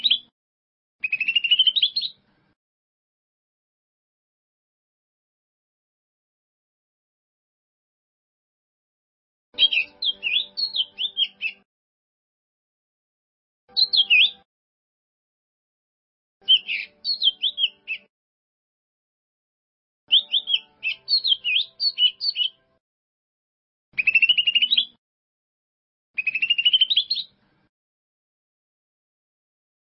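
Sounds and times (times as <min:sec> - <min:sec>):
bird song: 0:00.0 - 0:00.3, 0:01.0 - 0:02.4, 0:09.6 - 0:11.7, 0:13.7 - 0:14.5, 0:16.4 - 0:18.1, 0:20.1 - 0:22.8, 0:24.0 - 0:25.0, 0:26.2 - 0:27.5.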